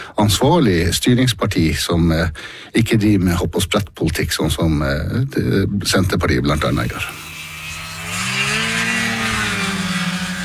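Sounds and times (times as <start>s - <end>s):
speech: 0.2s - 7.3s
small snowmobile engine droning: 7.0s - 10.4s.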